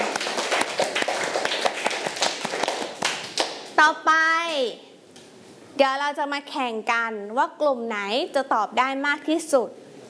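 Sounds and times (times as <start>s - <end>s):
group of students clapping for themselves: 0.0s - 3.7s
speech: 3.8s - 4.9s, 5.8s - 9.8s.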